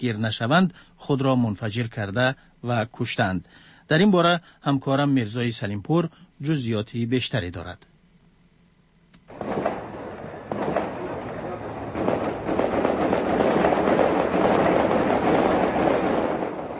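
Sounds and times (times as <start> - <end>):
speech: 0.0 - 7.9
gunfire at night in the Gozargah hills of Kabul, Afghanistan: 9.3 - 16.7.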